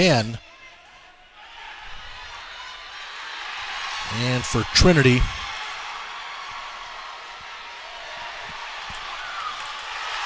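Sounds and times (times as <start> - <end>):
speech: 0.0 - 0.4, 4.1 - 5.4
wrestling crowd reacting: 0.0 - 10.2.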